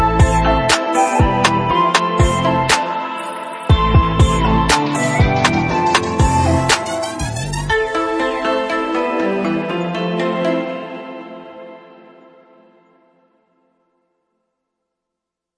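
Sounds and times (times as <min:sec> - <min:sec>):
urban hip hop dance background music: 0:00.0 - 0:12.2.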